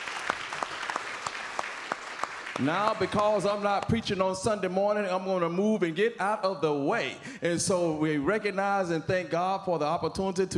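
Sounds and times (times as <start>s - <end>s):
audience clapping at a bus boycott anniversary gathering: 0.0s - 4.3s
speech: 2.6s - 10.5s.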